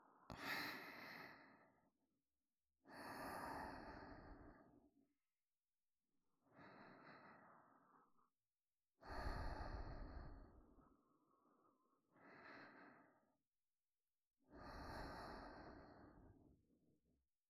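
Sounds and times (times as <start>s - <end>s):
breathing in both ears: 0.0s - 2.0s, 2.8s - 4.8s, 6.4s - 8.3s, 9.0s - 13.4s, 14.5s - 16.6s.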